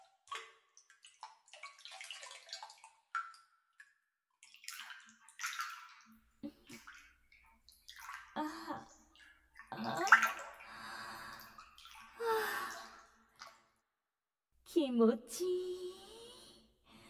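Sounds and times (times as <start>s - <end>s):
water splashing in an open-air hot spring bath: 0.9s - 3.3s, 4.5s - 7.0s, 7.8s - 9.0s, 9.6s - 13.5s
soft sighs and breathy sounds: 8.4s - 8.9s, 12.2s - 13.1s, 15.4s - 17.0s
speech: 14.8s - 15.6s.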